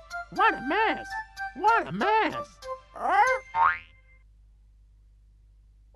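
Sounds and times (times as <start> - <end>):
speech: 0.3 - 3.8
springy cartoon boing effects for a bouncing ball: 3.3 - 4.0.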